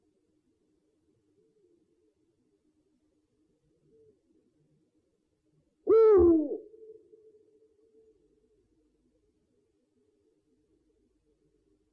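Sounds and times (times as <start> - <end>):
owl giving a two-part hoot: 5.9 - 7.1.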